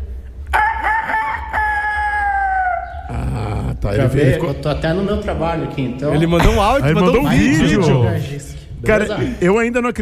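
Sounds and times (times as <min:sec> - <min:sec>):
man imitating a rooster crowing: 0:00.5 - 0:03.5
speech: 0:03.9 - 0:10.0.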